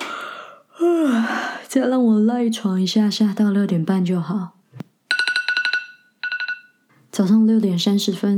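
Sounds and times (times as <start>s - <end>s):
speech: 1.7s - 4.6s, 7.2s - 8.3s
alarm clock ringing: 5.1s - 6.8s.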